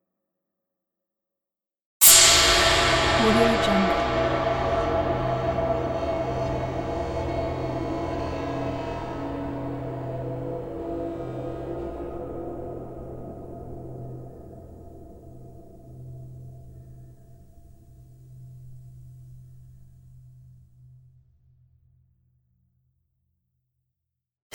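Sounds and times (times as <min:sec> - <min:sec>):
horror cymbals: 0:02.0 - 0:13.9.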